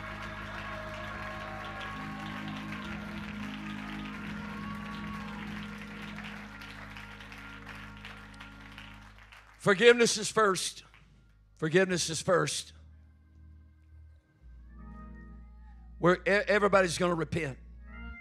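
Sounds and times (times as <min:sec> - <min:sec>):
audience clapping hands: 0:00.0 - 0:11.1
sustained low musical tones: 0:00.0 - 0:18.1
speech: 0:09.6 - 0:10.9, 0:11.6 - 0:12.8, 0:16.0 - 0:17.6.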